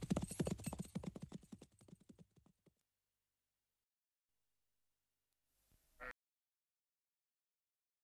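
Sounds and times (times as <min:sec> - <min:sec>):
many horses: 0:00.0 - 0:02.0.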